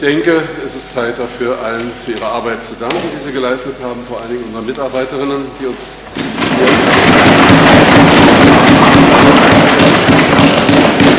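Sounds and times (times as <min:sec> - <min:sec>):
speech: 0:00.0 - 0:07.4
large crowd applauding: 0:06.6 - 0:11.1.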